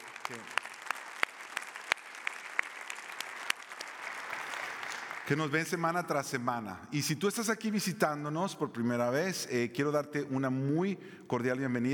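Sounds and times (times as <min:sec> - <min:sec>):
audience applauding loudly: 0:00.0 - 0:05.8
speech: 0:00.3 - 0:00.6, 0:05.3 - 0:11.9.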